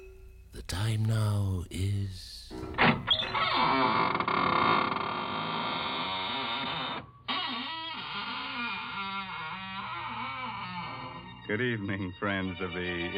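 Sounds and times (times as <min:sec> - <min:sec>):
speech: 0:00.7 - 0:02.5, 0:11.6 - 0:13.1
squeaking door creaking open: 0:02.5 - 0:11.5.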